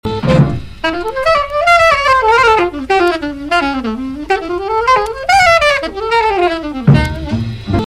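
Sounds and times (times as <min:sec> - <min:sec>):
drum break: 0:00.0 - 0:07.8.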